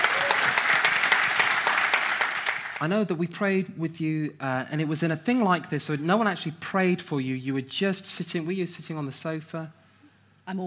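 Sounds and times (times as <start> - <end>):
audience applause at a gathering before prayer: 0.0 - 2.8
speech: 2.8 - 9.8, 10.5 - 10.6.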